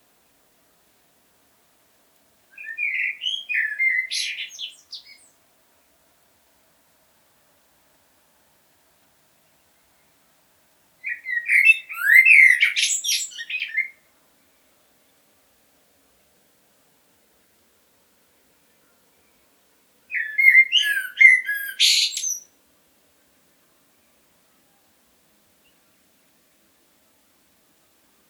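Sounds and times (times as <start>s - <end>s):
blackbird singing: 2.6s - 5.4s, 11.0s - 14.0s, 20.1s - 22.5s.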